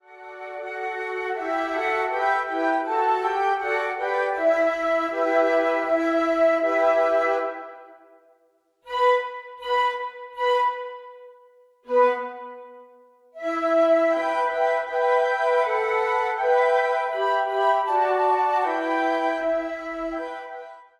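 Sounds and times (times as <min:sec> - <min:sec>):
four flutes: 0:00.0 - 0:20.9.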